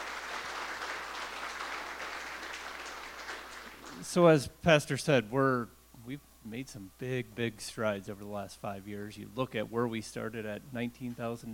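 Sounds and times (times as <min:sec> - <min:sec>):
audience applause: 0:00.0 - 0:04.0
speech: 0:04.0 - 0:11.5.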